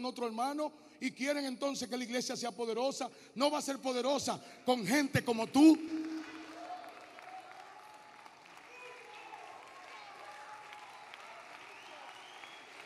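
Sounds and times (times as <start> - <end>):
speech: 0.0 - 6.1
audience applause: 5.6 - 12.8.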